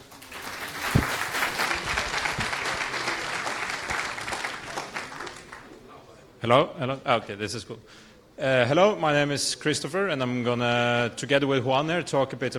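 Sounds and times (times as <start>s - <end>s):
audience clapping: 0.0s - 5.8s
speech: 6.4s - 12.5s.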